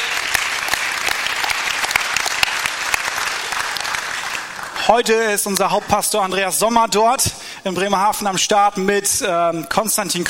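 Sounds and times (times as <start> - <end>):
crowd clapping: 0.0 - 5.8
speech: 4.9 - 10.2.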